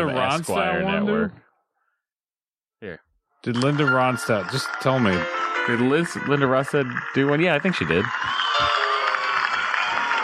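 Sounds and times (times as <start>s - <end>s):
speech: 0.0s - 1.4s, 2.8s - 8.8s
crowd clapping: 3.5s - 10.2s.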